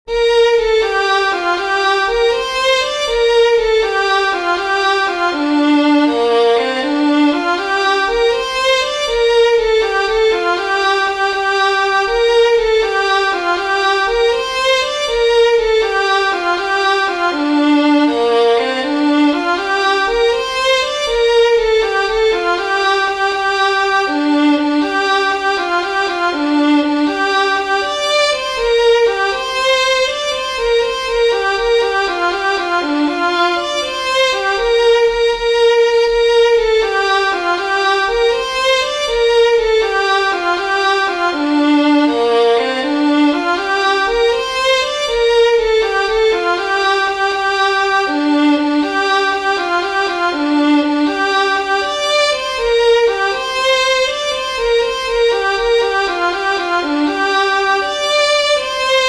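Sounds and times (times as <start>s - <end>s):
Nepalese folk song on violin: 0.0s - 59.0s.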